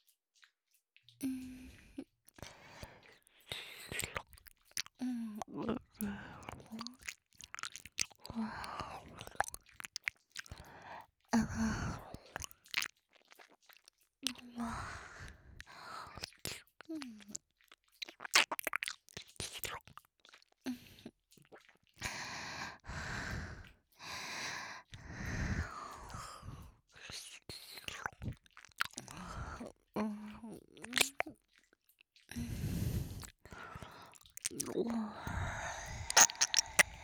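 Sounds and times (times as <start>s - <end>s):
close-miked ASMR ear-eating wet chewing: 0.4s - 37.0s
soft breaths, sighs and whispery exhales: 1.2s - 9.6s, 10.4s - 12.8s, 14.2s - 17.4s, 22.0s - 31.4s, 32.3s - 37.0s.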